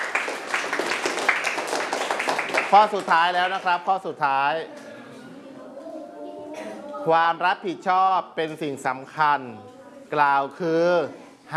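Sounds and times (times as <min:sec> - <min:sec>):
classroom students applauding themselves: 0:00.0 - 0:03.9
speech: 0:02.7 - 0:04.8, 0:07.0 - 0:11.5.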